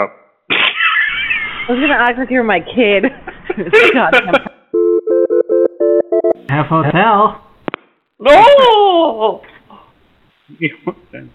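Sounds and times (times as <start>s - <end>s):
speech: 0.0s - 0.6s, 1.7s - 4.6s, 6.5s - 7.4s, 8.2s - 9.5s, 10.5s - 11.3s
telephone beeps: 4.8s - 6.4s.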